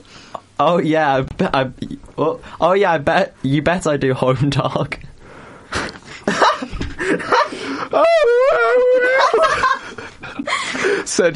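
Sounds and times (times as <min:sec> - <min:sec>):
speech: 0:00.6 - 0:05.1, 0:11.1 - 0:11.3
laughter: 0:06.1 - 0:10.7
person wailing like a banshee: 0:07.2 - 0:09.8
excited vocal noises and chatter: 0:07.9 - 0:09.6.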